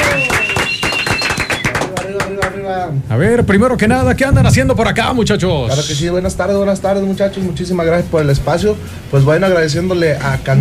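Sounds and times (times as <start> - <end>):
audience applause: 0.0 - 2.6
speech: 2.8 - 10.5.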